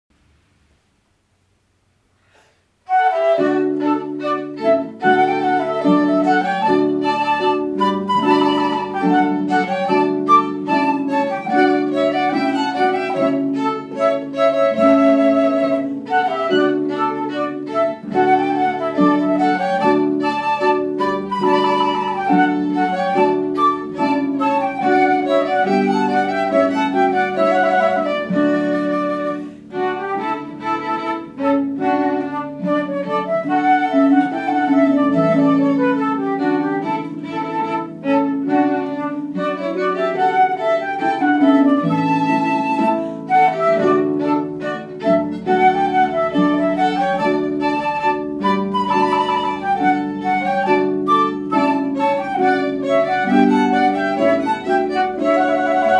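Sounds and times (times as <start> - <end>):
chamber music trio playing a rondeau: 0.2 - 55.9.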